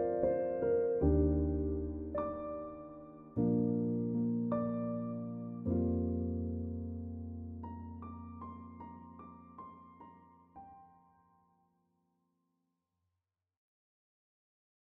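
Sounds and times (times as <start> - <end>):
piano instrumental: 0.0 - 11.5.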